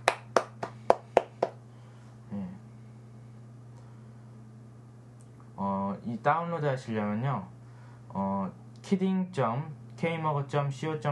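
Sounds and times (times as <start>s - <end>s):
applause, hands clapping: 0.0s - 1.6s
speech: 6.1s - 7.6s, 8.2s - 11.1s.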